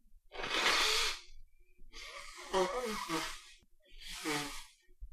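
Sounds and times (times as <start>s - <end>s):
person blowing nose: 0.3s - 4.8s
speech: 2.5s - 3.3s.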